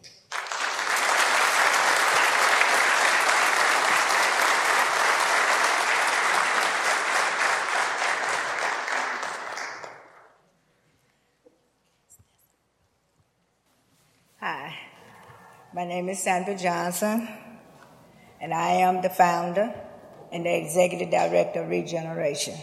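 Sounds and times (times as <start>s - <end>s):
audience applause welcoming a speaker at a morning gathering: 0.3s - 10.3s
speech: 16.0s - 17.4s, 18.5s - 22.6s.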